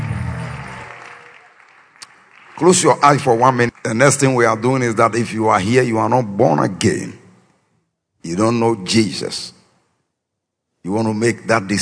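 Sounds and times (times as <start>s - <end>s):
audience clapping: 0.0s - 5.2s
speech: 2.6s - 7.2s, 8.2s - 9.6s, 10.8s - 11.8s.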